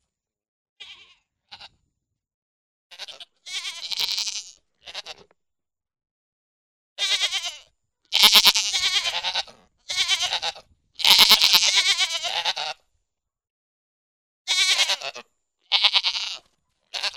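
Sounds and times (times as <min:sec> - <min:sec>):
goat giving wavering nasal bleats: 0:00.8 - 0:01.8, 0:02.9 - 0:05.3, 0:07.0 - 0:12.8, 0:14.5 - 0:17.1.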